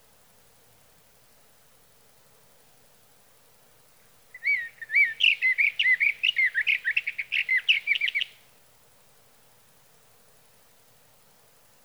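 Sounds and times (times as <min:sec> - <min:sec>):
sage thrasher song: 0:04.4 - 0:08.3.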